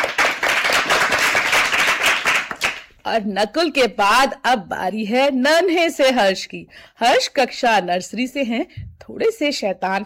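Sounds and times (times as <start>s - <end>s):
children clapping: 0.0s - 2.9s
speech: 3.1s - 10.0s.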